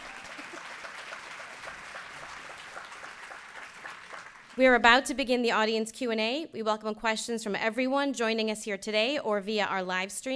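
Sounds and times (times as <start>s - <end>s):
audience applause: 0.0s - 4.6s
speech: 4.6s - 10.3s.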